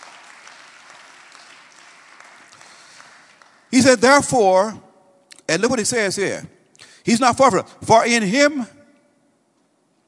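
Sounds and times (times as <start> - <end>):
applause: 0.0 - 3.8
speech: 3.7 - 4.8, 5.5 - 8.8.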